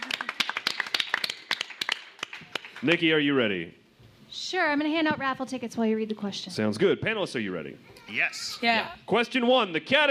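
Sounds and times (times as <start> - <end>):
small group hand clapping: 0.0 - 3.1
speech: 2.8 - 10.0.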